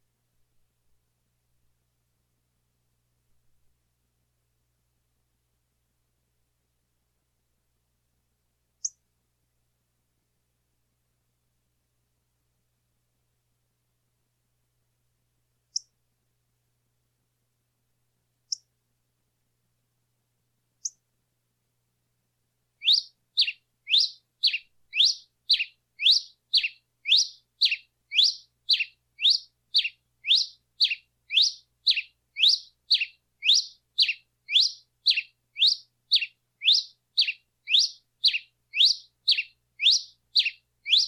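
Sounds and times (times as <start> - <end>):
singing: 22.8 - 41.0.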